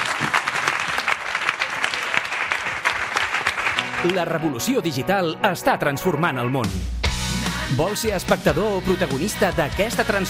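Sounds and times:
audience applause: 0.0s - 4.6s
speech: 4.0s - 7.0s, 7.7s - 10.2s.

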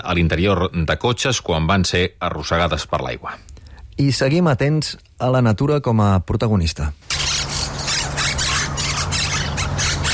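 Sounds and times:
speech: 0.0s - 7.6s
monk parakeets squawking: 7.0s - 10.1s.

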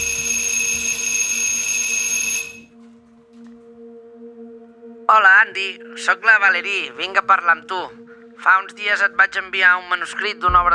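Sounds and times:
doorbell ringing: 0.0s - 2.7s
speech: 5.1s - 10.7s.

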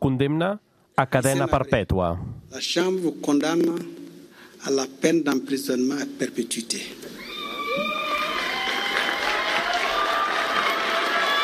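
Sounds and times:
speech: 0.1s - 4.0s, 4.6s - 7.2s
courtroom survivors applauding: 7.2s - 11.4s
high sustained shouts and cries of courtroom survivors: 7.2s - 11.4s.

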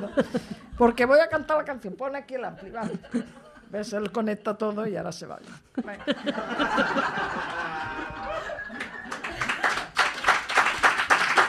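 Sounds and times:
laughter: 0.0s - 0.8s, 2.5s - 3.8s, 5.8s - 10.0s
speech: 0.0s - 8.2s
audience applause: 6.8s - 11.4s.

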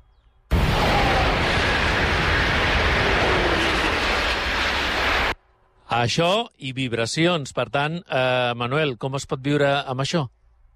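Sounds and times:
high-speed train passing by: 0.7s - 5.4s
speech: 6.0s - 10.4s.

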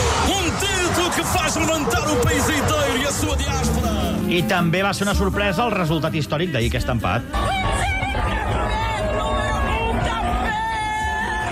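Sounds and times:
stadium crowd cheering at a World Cup match as Cape Verde earned first point: 0.0s - 4.5s, 7.3s - 11.5s
speech: 1.6s - 7.6s.

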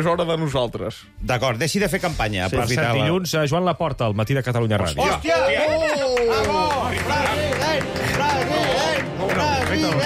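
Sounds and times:
speech: 0.0s - 10.0s
recorded applause: 5.4s - 10.0s.

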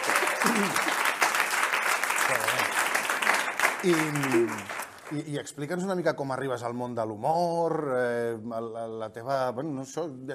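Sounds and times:
audience applause: 0.0s - 5.3s
speech: 0.5s - 0.9s, 3.8s - 10.3s.

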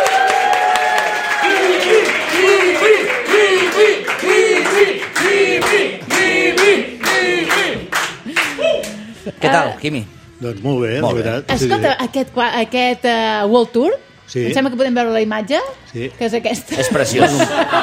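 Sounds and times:
studio audience applause: 0.0s - 9.1s
speech: 9.5s - 17.8s
laughter: 16.7s - 17.8s.

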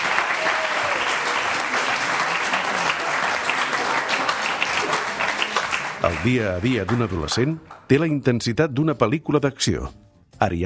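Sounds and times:
crowd applauding: 0.0s - 8.3s
speech: 6.0s - 10.6s.

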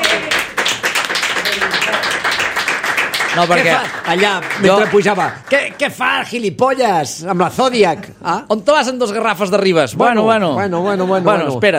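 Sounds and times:
group applauding: 0.0s - 6.5s
speech: 3.4s - 11.7s.

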